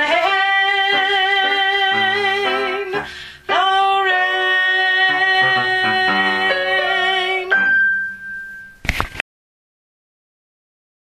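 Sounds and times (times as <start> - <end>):
altos singing: 0.0 - 7.7.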